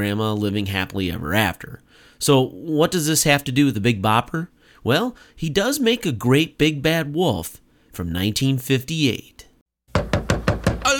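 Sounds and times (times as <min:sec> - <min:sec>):
speech: 0:00.0 - 0:09.4
knocking on a door in a novelty song: 0:09.9 - 0:10.9.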